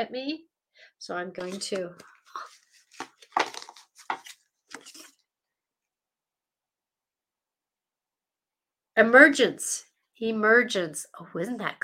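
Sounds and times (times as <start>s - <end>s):
speech: 0.0s - 2.6s, 9.0s - 11.8s
deck of cards being shuffled: 1.4s - 5.2s.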